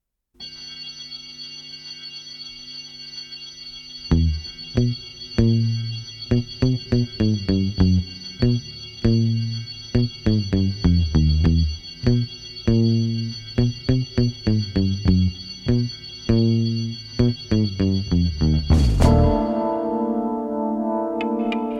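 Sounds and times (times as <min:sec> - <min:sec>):
spooky sound: 0:04.1 - 0:21.7.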